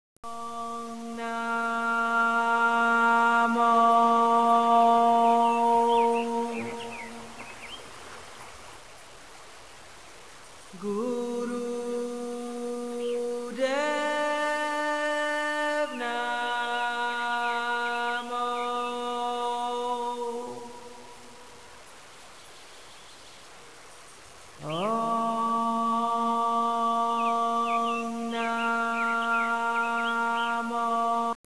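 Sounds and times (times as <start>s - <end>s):
chanting: 0.3s - 7.8s, 10.7s - 21.6s, 24.6s - 31.4s.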